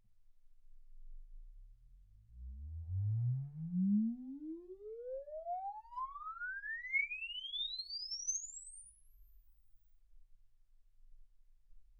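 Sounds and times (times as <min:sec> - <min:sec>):
exponential sine sweep from 10 Hz to 24 kHz: 0:02.4 - 0:09.6.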